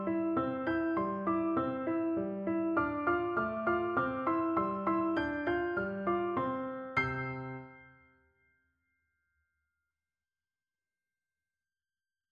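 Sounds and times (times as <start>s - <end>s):
Christmas song: 0.0s - 8.2s.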